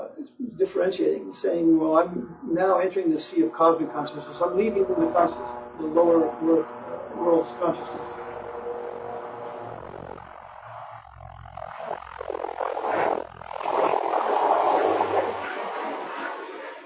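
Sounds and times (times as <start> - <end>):
airplane flying overhead: 0.4 - 16.8
speech: 0.6 - 8.2.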